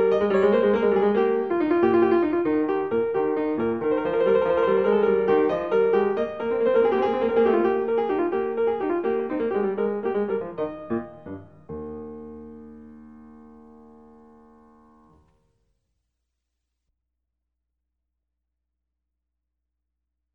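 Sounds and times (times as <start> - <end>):
gigue on piano: 0.0 - 15.1.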